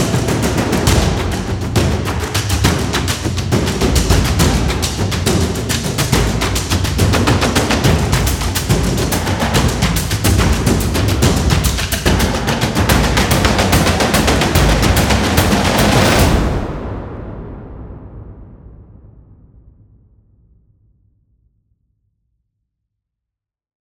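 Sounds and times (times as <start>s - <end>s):
drums: 0.0s - 18.4s.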